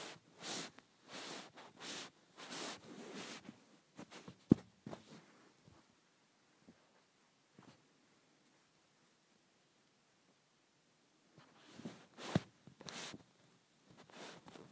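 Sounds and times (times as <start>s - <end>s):
phone rubbed against a blanket: 0.0s - 5.5s, 11.4s - 13.2s, 14.0s - 14.7s.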